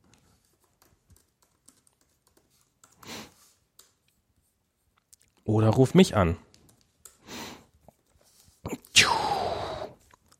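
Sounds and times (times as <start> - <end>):
faint typing on a computer keyboard: 0.0 - 4.1, 6.4 - 7.3
speech: 5.5 - 6.5.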